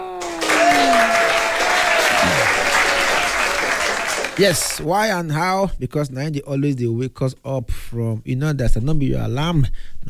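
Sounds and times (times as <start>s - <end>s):
audience round of applause at a live show: 0.0s - 4.8s
speech: 4.4s - 10.0s.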